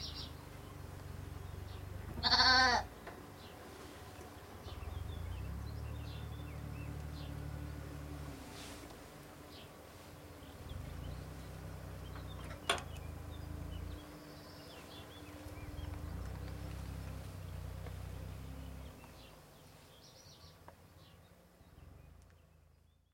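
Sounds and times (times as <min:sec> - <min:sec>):
birds singing: 0:00.0 - 0:23.1
young goats bleating: 0:02.1 - 0:02.9.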